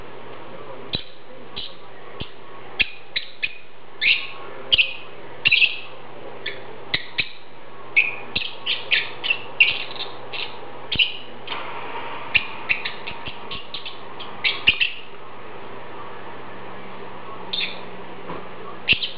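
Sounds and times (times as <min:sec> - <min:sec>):
Agapornis lovebird chirps: 0:00.9 - 0:11.3, 0:12.3 - 0:15.1, 0:17.5 - 0:17.9, 0:18.8 - 0:19.1.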